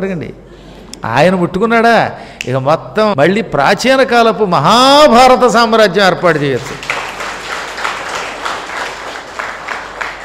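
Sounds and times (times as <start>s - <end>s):
speech: 0.0s - 6.8s
audience clapping during a Telugu storytelling discourse on the ancient epics: 6.3s - 10.2s.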